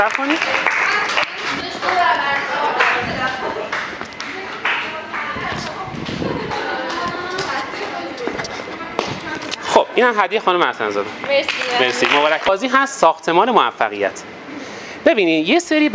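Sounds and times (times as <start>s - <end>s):
speech: 0.0s - 3.7s, 10.0s - 14.4s, 15.0s - 15.9s
people clapping for the winner of a game at a group gathering: 0.0s - 8.0s, 11.2s - 12.7s.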